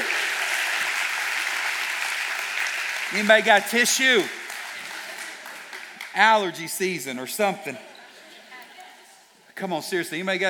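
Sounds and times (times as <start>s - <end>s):
audience applause: 0.0s - 6.6s
speech: 3.1s - 4.4s, 6.2s - 7.9s, 9.6s - 10.4s.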